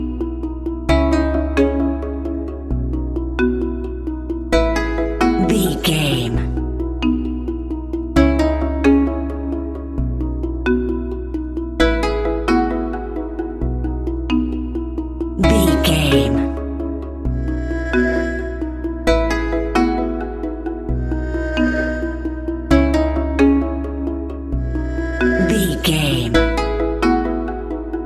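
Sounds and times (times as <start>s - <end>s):
atmospheric Chinese music: 0.0s - 28.0s.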